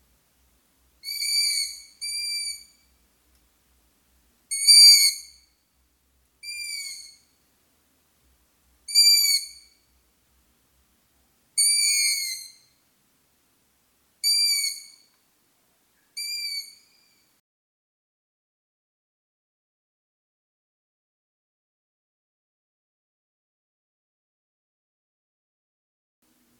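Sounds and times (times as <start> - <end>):
long-eared owls calling: 1.0 - 2.9, 4.5 - 5.4, 6.4 - 7.2, 8.9 - 9.8, 11.6 - 12.8, 14.2 - 15.1, 16.2 - 17.2.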